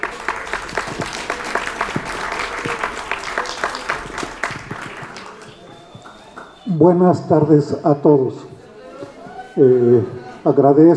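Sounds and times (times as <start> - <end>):
audience applause: 0.0 - 6.9
speech: 6.8 - 8.5, 9.6 - 10.9.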